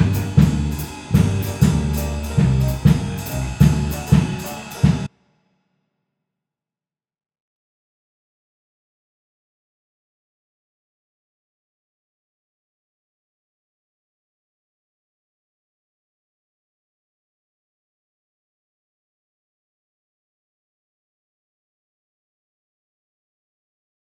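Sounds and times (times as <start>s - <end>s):
solo instrument section: 0.0s - 5.1s.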